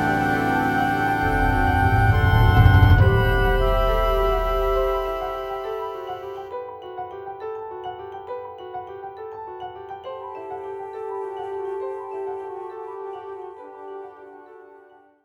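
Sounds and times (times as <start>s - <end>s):
transition sample accompaniment: 0.0s - 6.4s.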